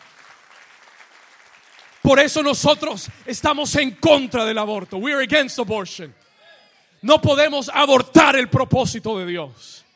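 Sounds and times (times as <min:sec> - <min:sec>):
audience applause: 0:00.0 - 0:05.2
speech: 0:02.0 - 0:06.2, 0:07.0 - 0:09.8.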